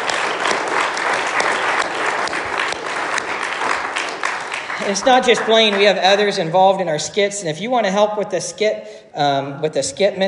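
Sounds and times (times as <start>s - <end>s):
audience applause: 0.0s - 6.1s
speech: 4.8s - 10.2s.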